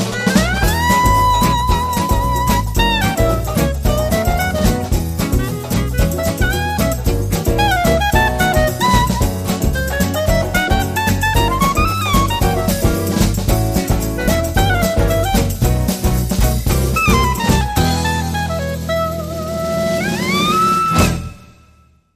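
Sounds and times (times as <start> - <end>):
clarinet solo: 0.1 - 16.0, 16.9 - 21.8.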